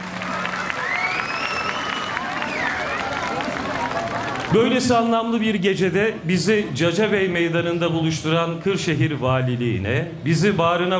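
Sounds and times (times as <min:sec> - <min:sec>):
festival crowd clapping in Cacabey Square in Kırşehir: 0:00.0 - 0:05.6
crowd babble: 0:00.0 - 0:10.9
speech: 0:04.5 - 0:10.9.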